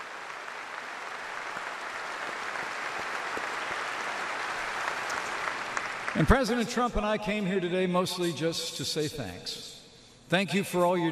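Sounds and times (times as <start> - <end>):
audience applause: 0.0 - 6.6
speech: 6.2 - 11.0.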